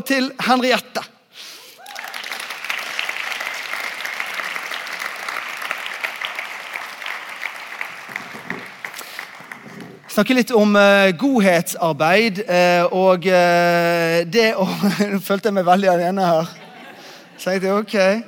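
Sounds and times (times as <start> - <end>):
speech: 0.0 - 1.5, 10.2 - 16.6, 17.4 - 18.2
audience applause: 1.8 - 10.1
laughter: 16.5 - 17.5.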